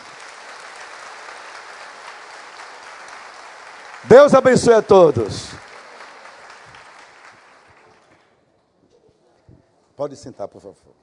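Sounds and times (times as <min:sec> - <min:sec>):
crowd clapping: 0:00.0 - 0:08.4
speech: 0:04.0 - 0:05.7, 0:10.0 - 0:11.0.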